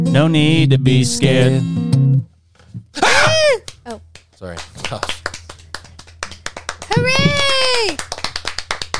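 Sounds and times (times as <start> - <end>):
speech: 0.2 - 1.8, 4.4 - 5.2
people clapping for themselves: 3.3 - 8.9.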